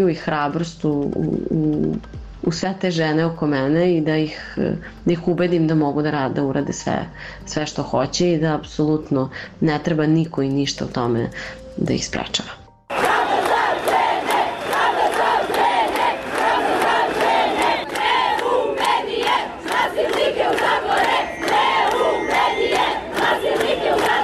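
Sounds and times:
speech: 0.0s - 12.6s
sharp rhythmic beats: 12.9s - 24.2s
women protesters chanting in unison: 12.9s - 24.2s.

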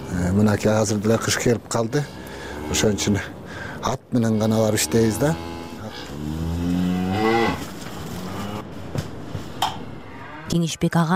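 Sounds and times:
speech: 0.2s - 5.6s, 10.5s - 11.1s
cattle mooing at a rural home: 2.4s - 3.3s, 4.3s - 8.6s, 9.8s - 10.7s.

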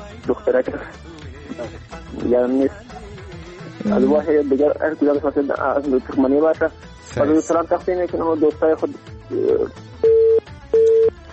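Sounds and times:
speech: 0.2s - 2.9s, 3.8s - 9.9s
telephone line tone after a call is cut off: 9.4s - 11.1s.

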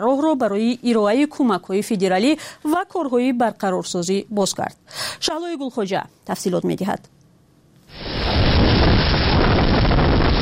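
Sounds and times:
speech: 0.0s - 7.2s
storm winds on school surveillance footage near the Alabama border in southern Mississippi: 7.9s - 10.4s.

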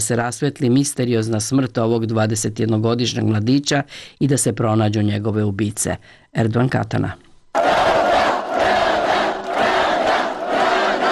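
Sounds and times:
speech: 0.0s - 7.3s
large protest crowd chanting in unison: 7.6s - 11.1s.

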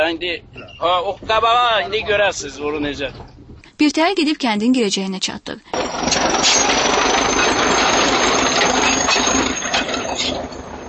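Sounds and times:
tractor rough rumbling and rattling: 0.0s - 3.6s, 5.7s - 10.8s
speech: 0.1s - 7.1s
tractor clearing the road at a village entrance: 5.7s - 10.8s.

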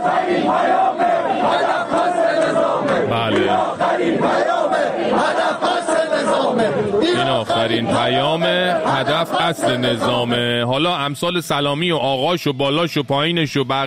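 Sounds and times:
protesting crowd shouting slogans: 0.0s - 10.6s
speech: 7.0s - 13.8s.

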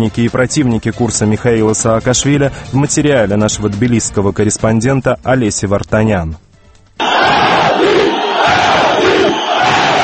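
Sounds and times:
speech: 0.0s - 6.4s
crowd chanting a demand at a protest: 7.0s - 10.0s.

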